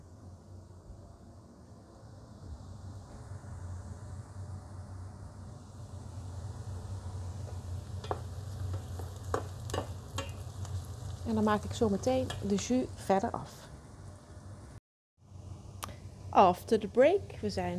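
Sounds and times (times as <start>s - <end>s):
low hum: 0.0s - 17.7s
sausages sizzling while browning in an oven: 5.7s - 14.8s
speech: 11.3s - 13.6s, 16.4s - 17.7s.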